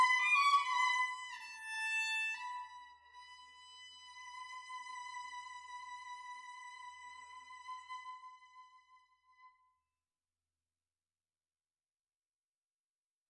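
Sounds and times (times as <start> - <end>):
compass violin: 0.0 - 9.6.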